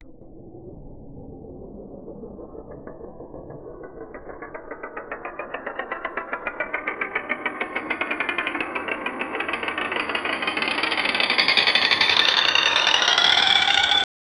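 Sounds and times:
wheel of fortune spinning: 4.1 - 14.1.

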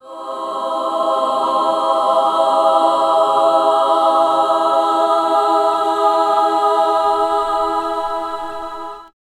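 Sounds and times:
gospel music: 0.0 - 9.1.

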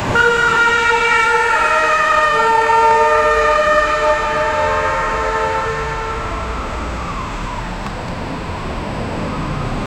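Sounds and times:
chaotic city street: 0.0 - 9.9.

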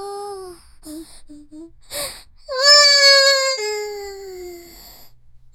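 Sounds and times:
little girl grunting: 2.5 - 4.7.

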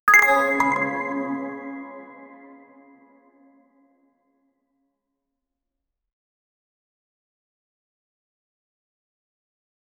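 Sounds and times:
mysterious object sound: 0.1 - 3.3.

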